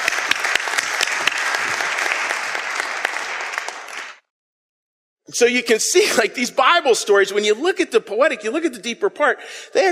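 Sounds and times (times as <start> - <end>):
audience applause: 0.0 - 4.3
speech: 5.3 - 9.9.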